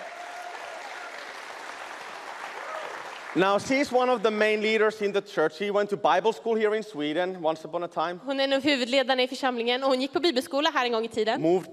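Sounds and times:
audience applause: 0:00.0 - 0:04.6
speech: 0:03.3 - 0:11.7.

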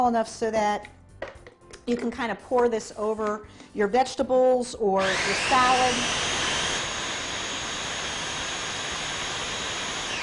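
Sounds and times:
speech: 0:00.0 - 0:06.3
food processor pulverizing nuts: 0:05.0 - 0:10.2.

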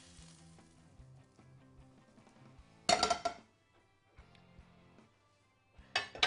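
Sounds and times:
sausage sizzling in a hot pan over peppers: 0:00.0 - 0:03.2
pan and utensils clinking: 0:02.9 - 0:03.4, 0:05.9 - 0:06.2.

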